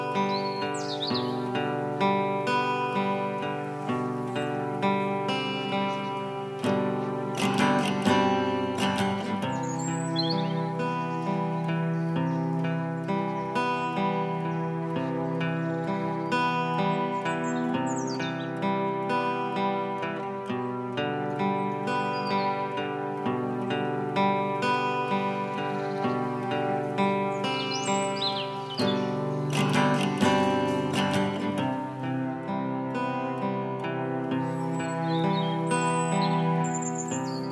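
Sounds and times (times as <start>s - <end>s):
church soundscape: 0.0s - 37.4s.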